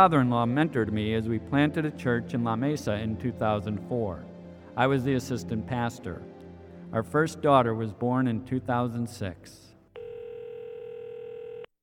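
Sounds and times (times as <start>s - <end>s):
speech: 0.0s - 6.3s, 6.9s - 9.6s
telephone electronic tone signalling an incoming call: 10.0s - 11.8s.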